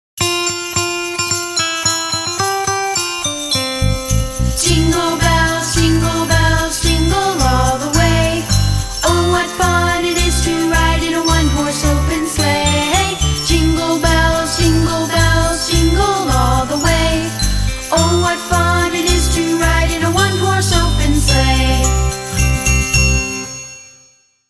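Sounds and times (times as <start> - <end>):
Christmas song: 0.2 - 24.3.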